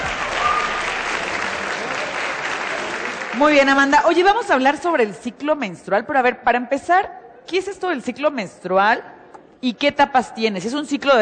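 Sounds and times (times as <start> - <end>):
audience applause: 0.0 - 3.9
speech: 3.4 - 11.1.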